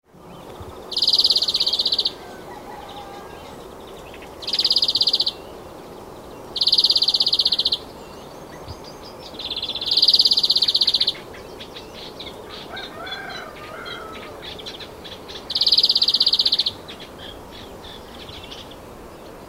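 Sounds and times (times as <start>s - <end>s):
Chloris chloris: 0.6s - 2.2s, 4.1s - 5.5s, 6.5s - 18.8s.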